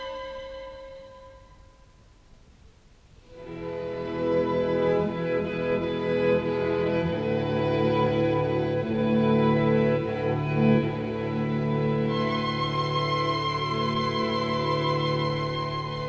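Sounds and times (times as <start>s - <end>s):
string quartet: 3.3s - 16.0s.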